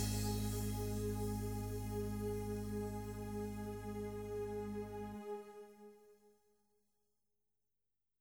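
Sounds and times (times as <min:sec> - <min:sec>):
groove jam track in A-flat: 0:00.0 - 0:04.4.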